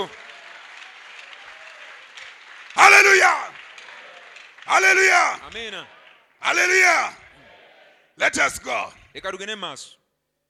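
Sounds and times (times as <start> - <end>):
speech: 0.0 - 0.2, 3.0 - 3.6, 4.7 - 7.2, 8.2 - 10.0
audience clapping: 0.0 - 8.0.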